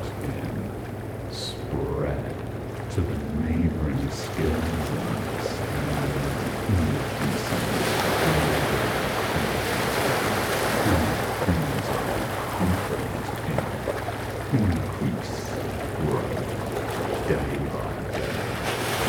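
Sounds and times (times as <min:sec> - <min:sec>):
ocean waves: 0:00.0 - 0:19.0.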